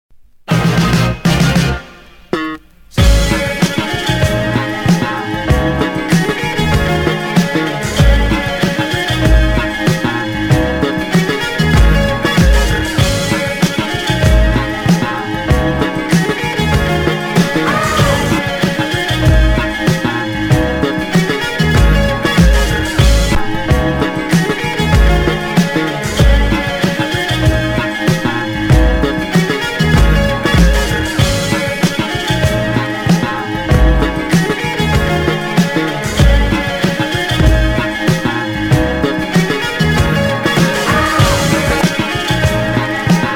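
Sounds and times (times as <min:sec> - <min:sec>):
instrumental music: 0:00.5 - 0:43.3.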